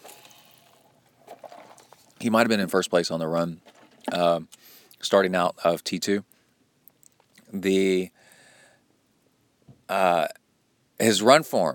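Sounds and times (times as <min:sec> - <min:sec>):
person sipping a drink: 0:00.0 - 0:02.2
speech: 0:02.2 - 0:06.3, 0:07.5 - 0:08.2, 0:09.9 - 0:10.4, 0:11.0 - 0:11.7.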